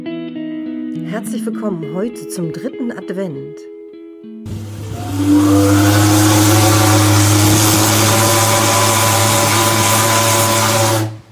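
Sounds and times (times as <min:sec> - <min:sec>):
speech: 0:01.1 - 0:03.7, 0:05.2 - 0:05.9
ship's horn blast heard in Hamburg: 0:04.5 - 0:11.3
steam hiss: 0:04.5 - 0:11.3.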